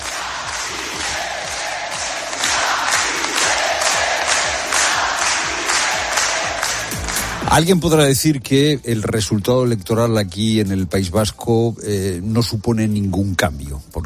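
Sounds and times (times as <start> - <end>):
large crowd shouting a rhythmic chant for independence: 0.0 - 7.4
speech: 7.5 - 14.0.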